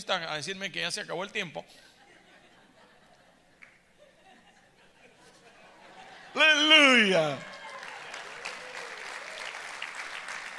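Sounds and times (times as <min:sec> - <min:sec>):
speech: 0:00.0 - 0:02.0, 0:06.4 - 0:07.6
laughter: 0:01.9 - 0:07.6
audience applauding: 0:06.3 - 0:10.5.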